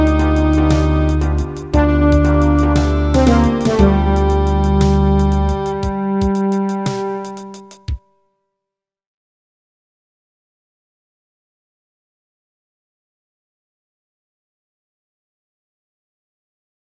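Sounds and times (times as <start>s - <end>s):
Jamaican music: 0.0s - 8.0s.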